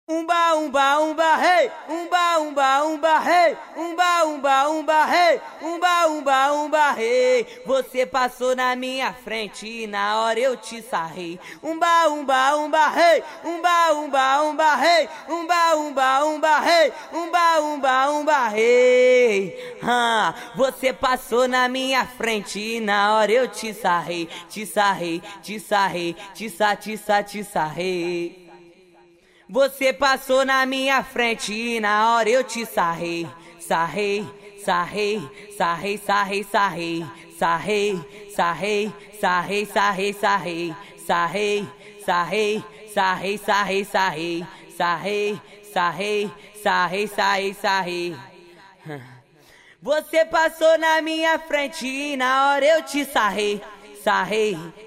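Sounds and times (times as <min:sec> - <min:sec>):
a cappella singing: 0:00.1 - 0:28.4, 0:29.5 - 0:49.2, 0:49.8 - 0:54.8.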